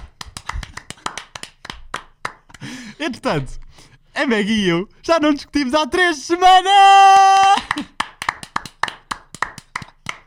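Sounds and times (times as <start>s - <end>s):
audience clapping: 0.0s - 2.7s, 7.4s - 10.2s
speech: 3.0s - 3.6s, 4.2s - 7.9s.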